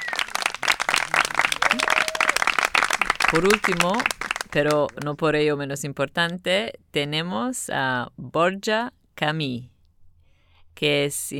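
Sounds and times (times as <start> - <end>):
audience applause: 0.0 - 5.0
speech: 3.3 - 9.7, 10.8 - 11.3.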